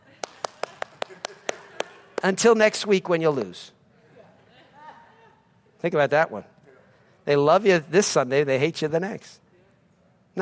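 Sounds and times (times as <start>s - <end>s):
people clapping: 0.0s - 2.5s
speech: 2.2s - 3.8s, 5.8s - 6.5s, 7.2s - 9.4s.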